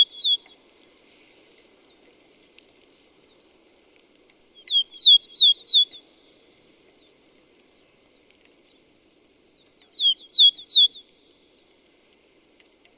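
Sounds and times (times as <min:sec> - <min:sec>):
red-flanked bluetail Tarsiger cyanurus: 0:00.0 - 0:00.6, 0:04.6 - 0:06.1, 0:09.8 - 0:11.3.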